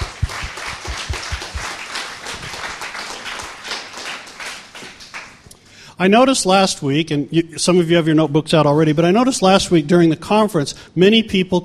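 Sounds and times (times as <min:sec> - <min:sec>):
church audience applause: 0:00.0 - 0:05.4
speech: 0:06.0 - 0:11.6.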